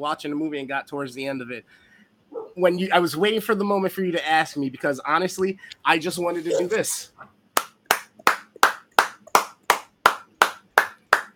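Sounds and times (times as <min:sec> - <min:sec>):
speech: 0:00.0 - 0:01.9, 0:02.6 - 0:07.3
one person clapping hands: 0:07.6 - 0:11.3.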